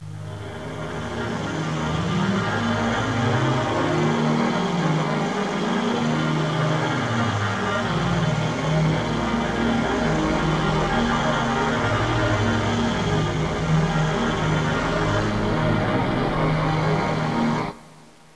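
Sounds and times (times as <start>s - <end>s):
synth pad: 0.0s - 18.3s.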